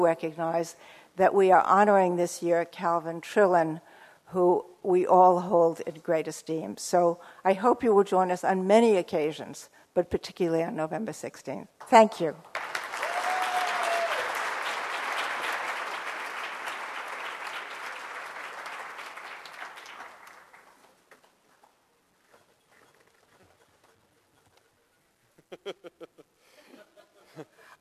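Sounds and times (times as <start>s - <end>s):
speech: 0.0s - 12.8s
audience applause: 12.5s - 21.1s.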